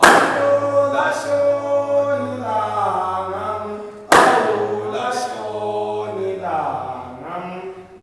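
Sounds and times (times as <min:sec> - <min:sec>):
man calling: 0:00.0 - 0:08.0.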